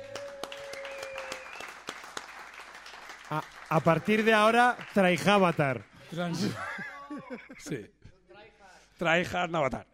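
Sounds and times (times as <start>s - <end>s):
applause: 0.0s - 6.2s
speech: 3.3s - 8.0s, 9.0s - 9.9s
laughter: 6.2s - 7.8s.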